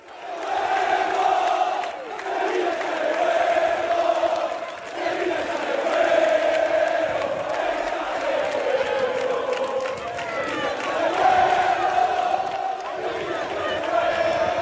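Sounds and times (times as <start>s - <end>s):
Sevilla football fans cheering and chanting to welcome the players: 0.0s - 14.6s.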